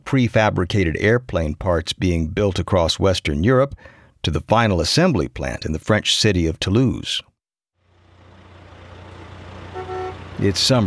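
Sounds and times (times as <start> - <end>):
speech: 0.1 - 7.3, 10.4 - 10.8
low truck engine rumble in a traffic jam outside Toulouse in summer 1971: 7.8 - 10.8.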